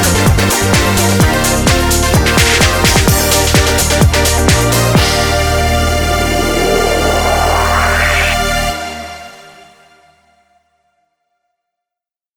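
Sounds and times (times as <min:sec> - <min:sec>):
instrumental music: 0:00.0 - 0:09.5.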